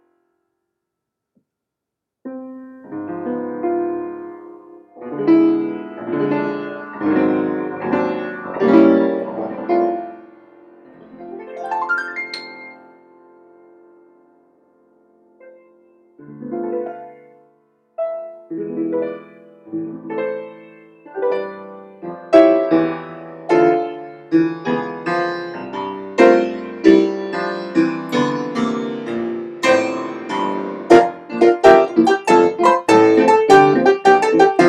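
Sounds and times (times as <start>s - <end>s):
piano improvisation in F major: 2.3s - 14.3s, 15.2s - 34.6s.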